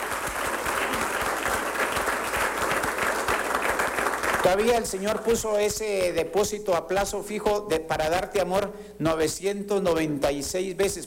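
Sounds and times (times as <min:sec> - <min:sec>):
audience applause: 0:00.0 - 0:05.4
speech: 0:04.4 - 0:11.0.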